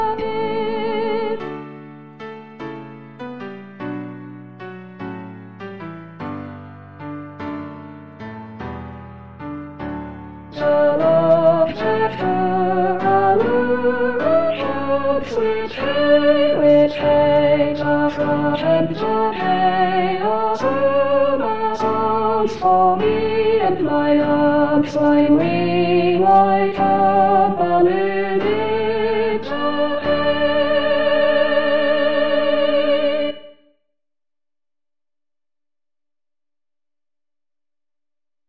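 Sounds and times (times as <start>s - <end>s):
soprano singing: 0.0s - 1.8s, 10.5s - 33.6s.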